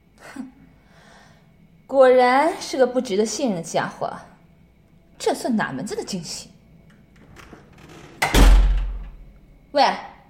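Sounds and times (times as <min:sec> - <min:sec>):
speech: 0:01.9 - 0:04.3, 0:05.2 - 0:06.5, 0:09.8 - 0:10.1
door being shut: 0:07.2 - 0:09.3.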